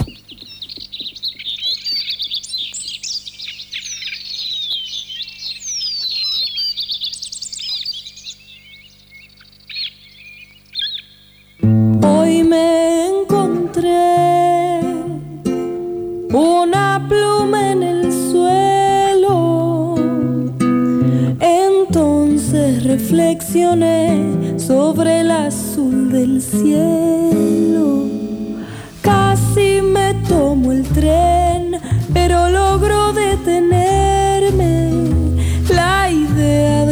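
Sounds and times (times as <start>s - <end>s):
bright bird chirps and tweets: 0.0s - 36.9s
low steady hum: 10.6s - 36.9s
loud recorded song with full dense instrumentation: 11.6s - 36.9s.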